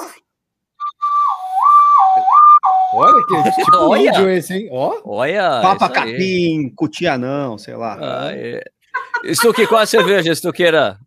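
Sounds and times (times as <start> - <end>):
person whistling a siren imitation: 0.8 - 4.2
speech: 3.0 - 11.0
laughter: 3.3 - 4.2, 5.6 - 6.4, 9.0 - 10.4.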